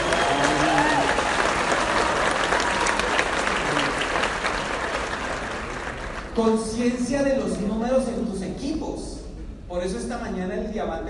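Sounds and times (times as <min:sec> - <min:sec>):
faint voices and whoops: 0:00.0 - 0:05.1
audience applause: 0:00.0 - 0:06.4
speech: 0:06.4 - 0:09.1, 0:09.7 - 0:11.0.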